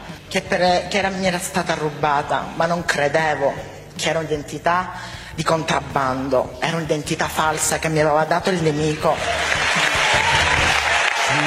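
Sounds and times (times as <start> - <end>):
speech: 0.3 - 9.6
audience applauding: 9.2 - 11.4.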